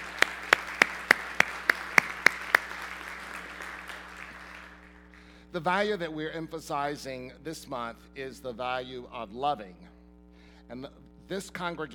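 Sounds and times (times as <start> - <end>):
audience clapping in rhythm: 0.0 - 5.3
speech: 5.5 - 9.9, 10.7 - 11.9.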